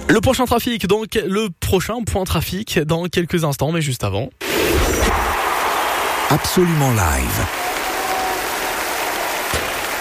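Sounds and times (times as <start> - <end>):
speech: 0.1 - 4.5, 6.3 - 7.6
concert audience applauding a pop singer on stage: 5.3 - 9.9.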